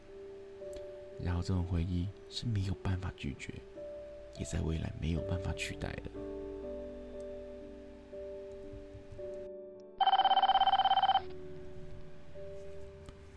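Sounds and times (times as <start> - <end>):
speech: 1.2 - 3.7, 4.4 - 6.4
phone ringing: 10.0 - 11.4.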